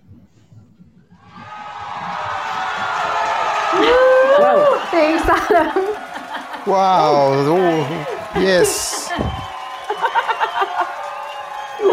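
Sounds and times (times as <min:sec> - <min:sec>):
small group clapping and cheering: 0:01.2 - 0:11.9
laughter: 0:01.6 - 0:11.9
speech: 0:05.0 - 0:06.0, 0:06.6 - 0:09.4.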